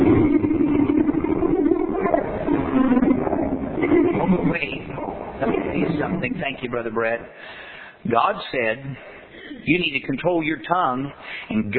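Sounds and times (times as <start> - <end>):
lion roaring: 0.0 - 6.5
speech: 6.3 - 11.7.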